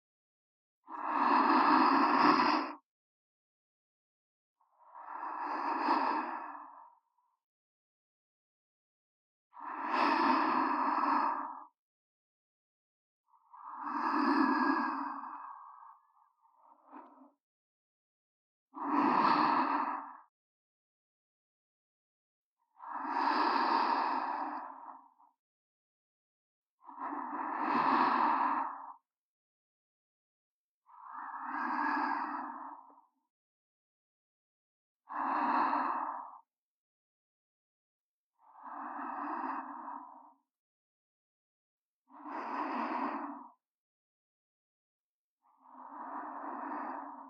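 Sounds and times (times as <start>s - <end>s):
sleep breathing in the left channel: 1.0s - 2.8s, 5.0s - 7.0s, 9.6s - 11.7s, 13.5s - 16.0s, 18.8s - 20.2s, 22.8s - 25.3s, 26.8s - 29.0s, 30.9s - 33.1s, 35.1s - 36.5s, 38.4s - 40.5s, 42.1s - 43.6s, 45.6s - 47.2s.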